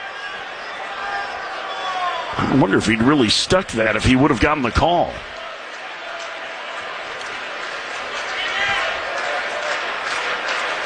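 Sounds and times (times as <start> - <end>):
general stadium crowd noise: 0.0 - 10.8
speech: 2.4 - 5.4
stadium crowd of baseball fans clapping: 4.2 - 10.8.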